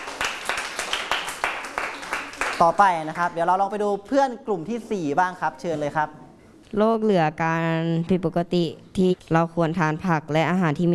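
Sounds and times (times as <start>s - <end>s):
classmates applauding a fellow student in a classroom: 0.0s - 3.3s
speech: 2.6s - 10.9s.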